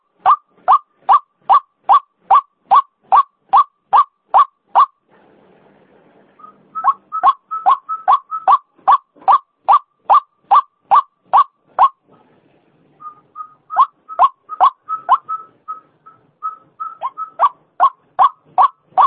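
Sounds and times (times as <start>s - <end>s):
female white-breasted waterhen croaking call used as a lure sound: 0.0s - 5.0s, 6.8s - 12.0s, 13.5s - 15.5s, 16.8s - 19.0s.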